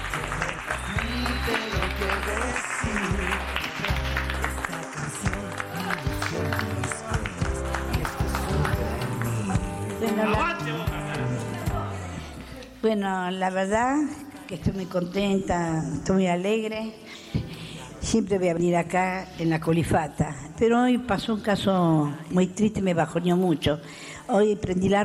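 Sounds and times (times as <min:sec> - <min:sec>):
crowd applauding at a hospital radio station: 0:00.0 - 0:11.3
speech: 0:01.5 - 0:04.0, 0:12.8 - 0:17.2, 0:18.1 - 0:25.0.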